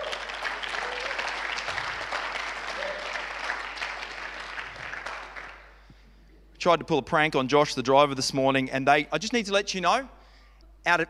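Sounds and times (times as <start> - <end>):
church audience applause welcoming guests from Good Life Church in Newcastle: 0.0 - 5.8
speech: 6.6 - 10.2, 10.8 - 11.0.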